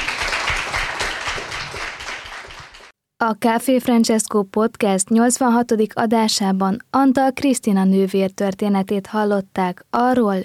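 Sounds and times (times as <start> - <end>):
audience applause: 0.0 - 2.9
speech: 3.2 - 10.4.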